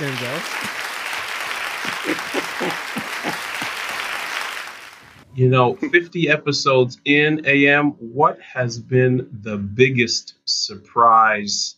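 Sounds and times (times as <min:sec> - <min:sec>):
laughter: 0:00.0 - 0:04.6, 0:05.4 - 0:06.8
applause: 0:00.0 - 0:05.3
speech: 0:00.2 - 0:00.9, 0:01.8 - 0:03.4, 0:05.4 - 0:11.7.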